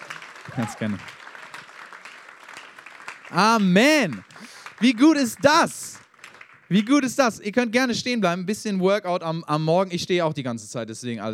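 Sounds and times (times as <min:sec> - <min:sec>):
audience applause: 0:00.0 - 0:07.1
speech: 0:00.5 - 0:01.2, 0:03.3 - 0:05.9, 0:06.7 - 0:11.3.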